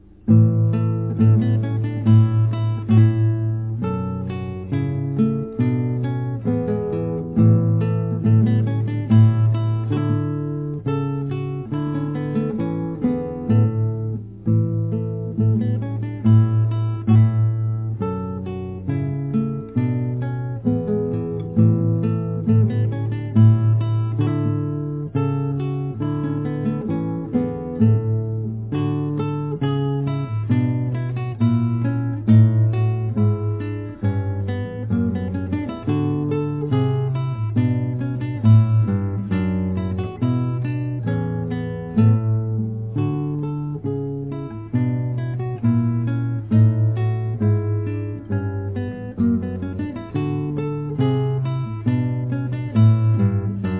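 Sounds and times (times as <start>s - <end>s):
musette music: 0.0s - 53.7s.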